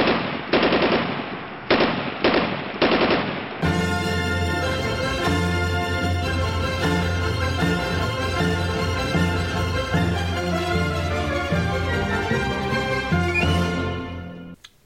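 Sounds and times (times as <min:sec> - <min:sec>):
machine gun fire sound effect: 0:00.0 - 0:03.6
music: 0:03.6 - 0:14.6.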